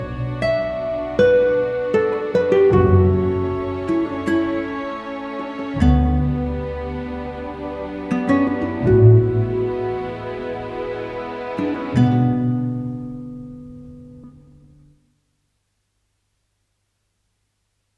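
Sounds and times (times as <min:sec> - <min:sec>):
Spanish wedding music: 0:00.0 - 0:13.4.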